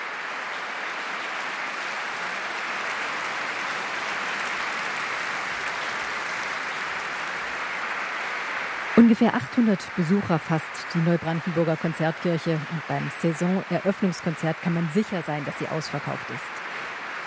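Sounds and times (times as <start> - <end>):
concert audience applauding: 0.0 - 17.2
speech: 9.0 - 16.5.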